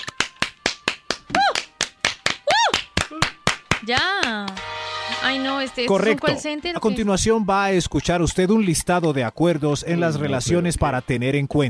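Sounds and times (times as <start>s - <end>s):
hands clapping: 0.0s - 4.7s
speech: 3.8s - 4.6s, 5.2s - 11.6s.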